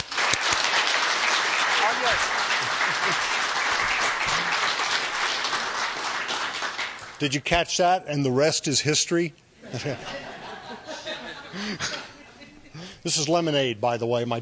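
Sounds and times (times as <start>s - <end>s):
audience applause welcoming an author at a book event: 0.0s - 7.4s
laughter: 2.6s - 3.5s, 9.6s - 12.9s
speech: 7.2s - 10.2s, 13.0s - 14.4s.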